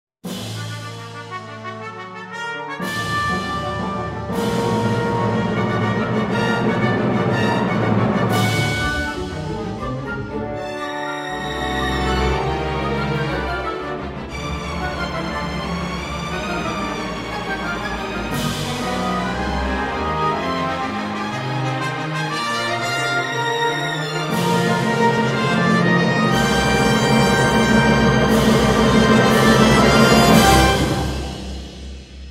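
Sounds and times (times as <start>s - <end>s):
fanfare: 0.3s - 31.8s.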